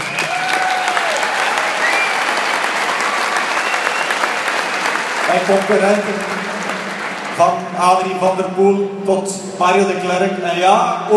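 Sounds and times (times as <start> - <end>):
audience applause: 0.0 - 8.2
speech: 5.3 - 6.5, 7.4 - 11.1.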